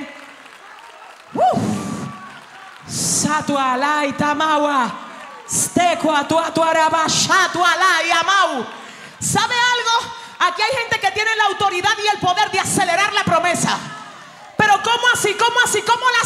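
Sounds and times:
audience applauding: 0.0s - 3.3s
speech: 3.3s - 14.0s, 14.6s - 16.2s.

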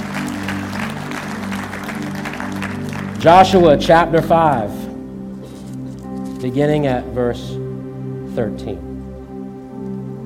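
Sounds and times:
audience clapping hands in praise: 0.0s - 3.7s
low musical drone: 0.0s - 10.2s
speech: 3.2s - 4.8s, 6.4s - 7.6s, 8.4s - 8.9s.

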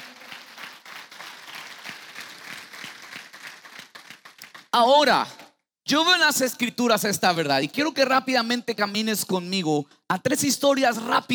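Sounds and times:
audience applause: 0.0s - 4.7s
speech: 4.8s - 11.3s.

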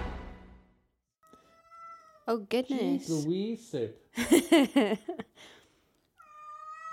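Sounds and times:
cat meowing: 1.2s - 2.3s, 6.2s - 6.9s
speech: 2.3s - 5.6s
laughter: 4.2s - 5.3s.

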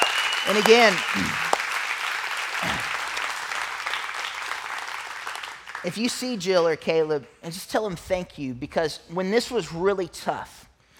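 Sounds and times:
audience applause at a gathering: 0.0s - 5.8s
speech: 0.4s - 1.5s, 2.6s - 3.0s, 5.8s - 10.7s.

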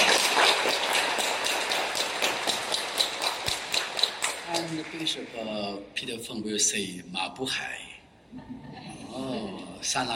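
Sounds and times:
audience applause welcoming a bishop: 0.0s - 5.8s
speech: 5.1s - 8.6s, 9.2s - 10.1s.

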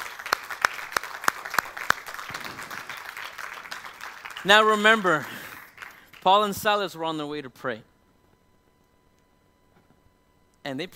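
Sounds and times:
audience applause: 0.0s - 6.2s
speech: 4.4s - 5.4s, 6.2s - 7.9s, 10.6s - 10.9s.

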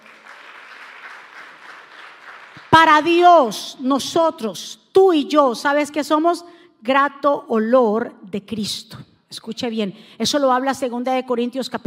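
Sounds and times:
audience applause: 0.0s - 2.7s
speech: 2.8s - 11.8s.

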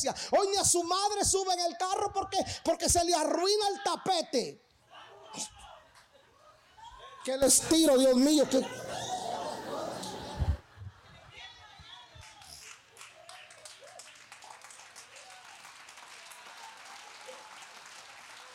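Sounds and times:
speech: 0.0s - 4.7s, 5.3s - 5.6s, 7.2s - 9.1s
laughter: 5.1s - 11.7s
murmuring voices: 7.4s - 11.0s
church audience applauding: 7.6s - 10.7s, 12.2s - 18.5s.

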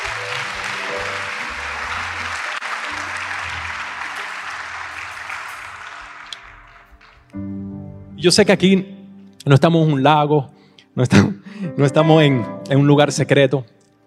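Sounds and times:
audience applause: 0.0s - 7.4s
speech: 8.2s - 13.8s.

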